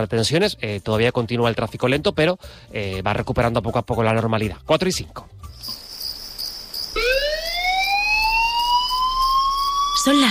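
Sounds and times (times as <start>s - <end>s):
speech: 0.0s - 5.8s, 10.0s - 10.2s
emergency alert tone: 5.6s - 10.2s.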